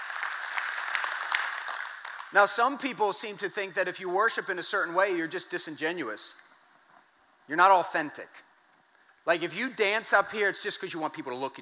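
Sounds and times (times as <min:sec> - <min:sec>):
audience clapping: 0:00.0 - 0:02.9
speech: 0:02.3 - 0:06.4, 0:07.5 - 0:08.5, 0:09.2 - 0:11.6.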